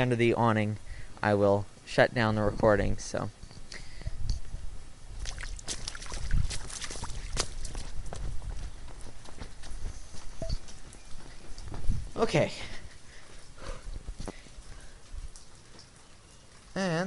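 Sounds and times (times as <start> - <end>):
speech: 0.0 - 3.4, 12.2 - 12.7, 16.8 - 17.0
footsteps wading through water: 5.2 - 8.1.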